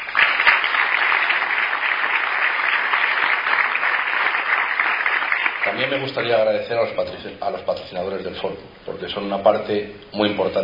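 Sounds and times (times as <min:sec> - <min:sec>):
audience applause: 0:00.0 - 0:06.1
speech: 0:05.7 - 0:10.6.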